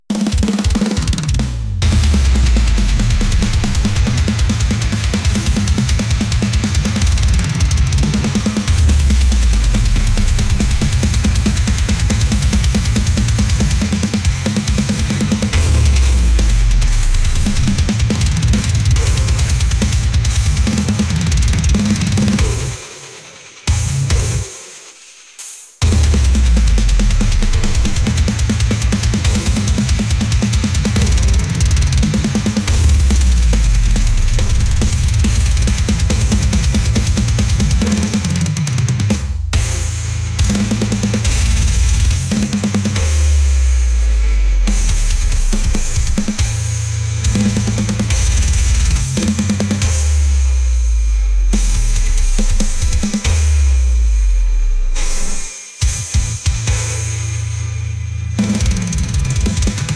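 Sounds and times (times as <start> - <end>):
brostep banger bass: 0.1 - 24.6, 25.4 - 59.9.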